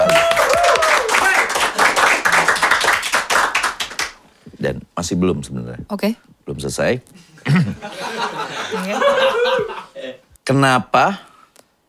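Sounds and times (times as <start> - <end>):
small group applause: 0.0 - 4.2
speech: 5.0 - 11.3
laughter: 7.4 - 10.2.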